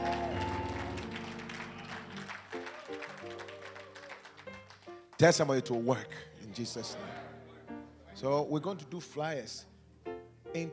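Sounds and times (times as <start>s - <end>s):
audience clapping: 0.0s - 5.4s
speech: 5.2s - 7.1s, 8.2s - 9.7s, 10.5s - 10.7s.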